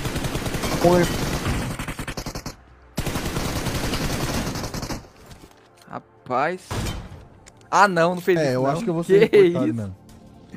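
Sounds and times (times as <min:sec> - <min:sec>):
sniper rifle gunfire in the video game PUBG Mobile: 0:00.0 - 0:05.2
speech: 0:00.8 - 0:01.3, 0:06.3 - 0:07.0, 0:07.7 - 0:10.5.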